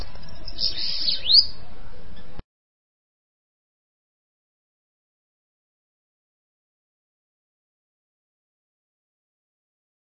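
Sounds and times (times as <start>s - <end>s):
bananaquit singing: 0.0s - 2.4s.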